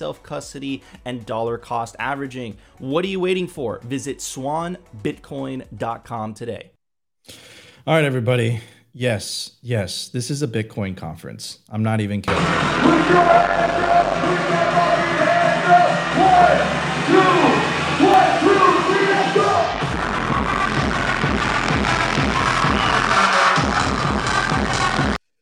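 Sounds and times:
speech: 0.0s - 15.0s
amplified voice shouting: 12.3s - 19.8s
large crowd cheering at a conference: 12.3s - 25.1s
pulsing beat: 12.3s - 25.2s.

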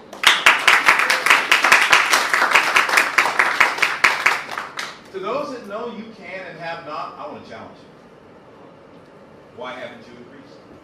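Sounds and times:
crowd steady rhythmic applause: 0.0s - 5.1s
speech: 5.2s - 8.0s, 9.6s - 10.7s.

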